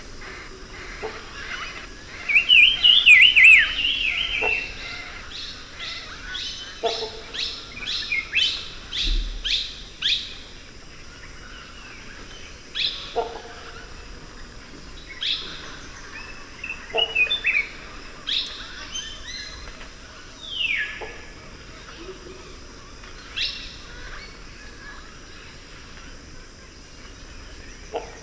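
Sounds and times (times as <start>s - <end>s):
deep jungle ambience: 0.0s - 28.2s.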